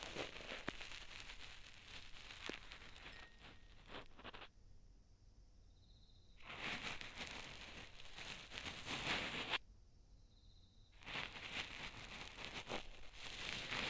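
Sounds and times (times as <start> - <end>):
cotton swab rubbing in left ear for ASMR: 0.0 - 4.5, 6.4 - 9.6, 11.0 - 13.8.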